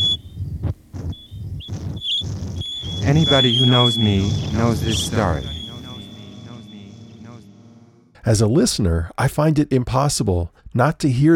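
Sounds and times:
high whistling tone: 0.0 - 8.0
low scratchy rumbling: 0.0 - 8.2
speech: 3.1 - 5.6, 8.2 - 11.3.

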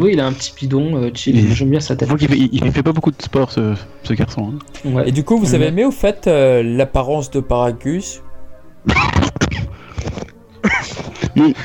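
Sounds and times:
speech: 0.0 - 9.8, 10.8 - 11.6
laughter: 8.8 - 11.6
person coughing: 8.9 - 11.6.

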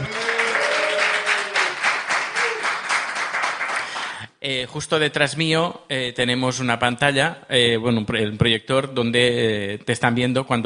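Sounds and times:
live audience applause: 0.0 - 4.2
speech: 4.4 - 10.6.

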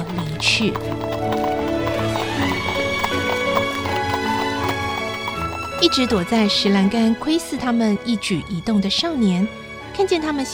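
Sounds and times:
horse-drawn carriage hooves clip-clopping: 0.0 - 6.9
speech: 0.4 - 1.4, 5.8 - 10.5.

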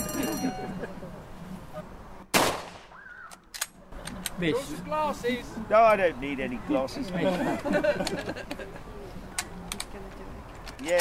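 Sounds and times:
laughter: 0.0 - 1.9, 7.0 - 9.1
SMLE .303 rifle gunshot: 2.3 - 3.0
speech: 4.4 - 8.6.

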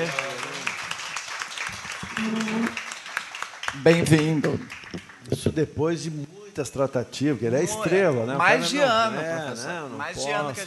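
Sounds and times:
speech: 0.0 - 0.2, 2.2 - 2.8, 3.8 - 10.6
audience applause: 0.0 - 5.3.

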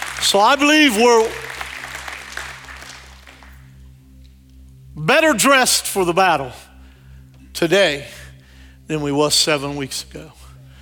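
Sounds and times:
congregation clapping in praise during a church service: 0.0 - 3.8
speech: 0.2 - 1.4, 5.0 - 6.6, 7.6 - 8.2, 8.9 - 10.4.

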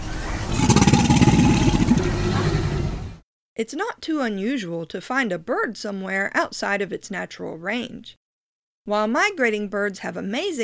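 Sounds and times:
American alligator bellowing: 0.5 - 3.1
speech: 3.6 - 8.2, 8.8 - 10.6.

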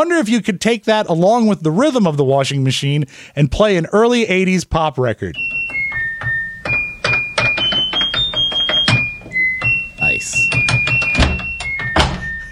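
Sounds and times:
speech: 0.0 - 5.6
door slamming: 5.4 - 12.5.

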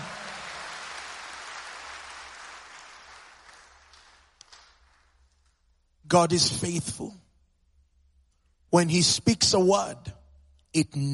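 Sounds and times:
crowd hand clapping: 0.0 - 5.8
speech: 6.1 - 7.2, 8.7 - 11.1.

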